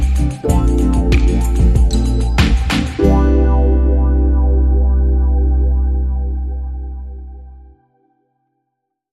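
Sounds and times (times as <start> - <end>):
bossa nova beach music: 0.0 - 7.1.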